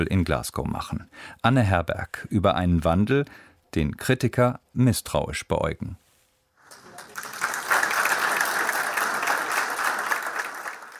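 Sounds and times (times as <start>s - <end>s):
speech: 0.0s - 6.0s
steady applause from a group: 6.6s - 10.9s.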